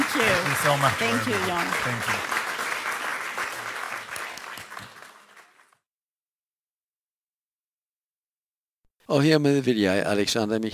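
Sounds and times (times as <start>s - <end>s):
audience applause: 0.0s - 5.8s
speech: 0.2s - 2.4s, 9.1s - 10.7s.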